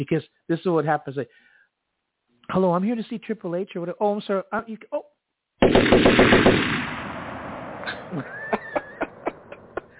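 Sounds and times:
speech: 0.0 - 1.5, 2.5 - 6.6, 8.1 - 8.4
machine gun fire: 5.6 - 8.1
laughter: 7.8 - 9.9.

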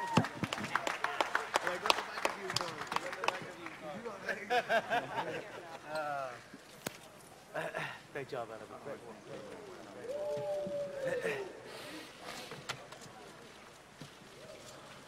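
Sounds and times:
audience applause: 0.0 - 4.1
laughter: 4.0 - 5.9, 10.6 - 12.1
speech: 4.6 - 6.5, 8.2 - 11.9.

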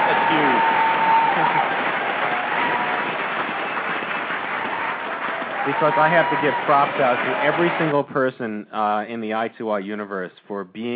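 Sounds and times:
crowd applause: 0.0 - 8.0
speech: 5.7 - 10.9.

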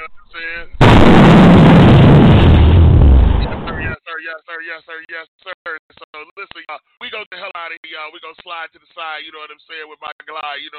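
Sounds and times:
bomb explosion sound effect: 0.8 - 4.0
speech: 4.7 - 10.7.

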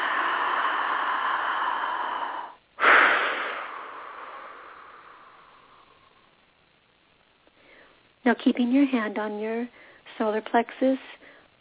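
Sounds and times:
deep breath: 0.0 - 6.5, 7.5 - 8.1, 9.7 - 10.1, 11.2 - 11.5
speech: 8.3 - 11.2.

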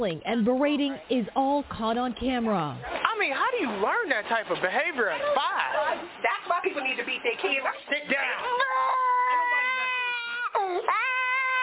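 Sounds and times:
speech: 0.0 - 3.0, 3.6 - 8.6
young boy wailing loudly: 8.4 - 11.6.

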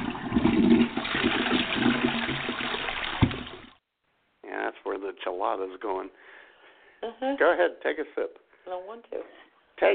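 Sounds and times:
toilet flushing: 0.0 - 3.8
speech: 5.4 - 6.4, 7.0 - 9.9.

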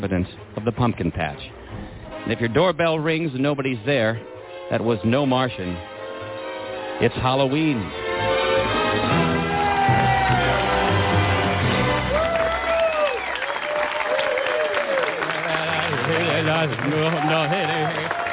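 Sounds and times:
speech: 0.0 - 1.5, 2.2 - 5.9, 7.0 - 8.0, 16.6 - 18.2
stadium crowd standing ovation applause and cheering: 8.4 - 18.3.

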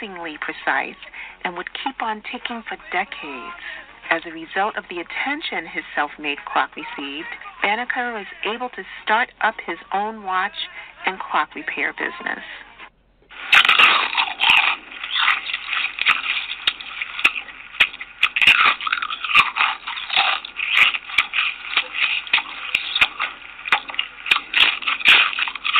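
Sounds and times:
speech: 0.0 - 12.7
crunching into a potato chip: 13.3 - 25.7.

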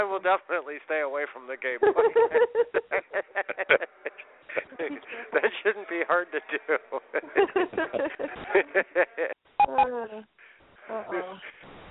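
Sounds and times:
speech: 0.0 - 10.3
laughter: 1.8 - 9.4
beep: 9.6 - 10.0.

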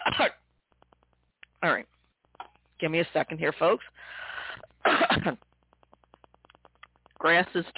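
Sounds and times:
cough: 0.0 - 0.4, 4.8 - 5.4
speech: 0.1 - 0.4, 1.6 - 1.9, 2.8 - 5.5, 7.2 - 7.7
quiet breathing: 3.8 - 4.8.

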